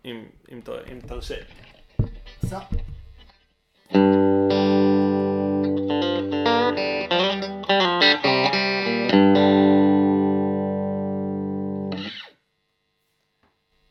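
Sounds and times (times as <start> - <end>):
speech: 0.0 - 1.7, 2.4 - 2.9
electric guitar bridge pickup tone: 3.1 - 12.4.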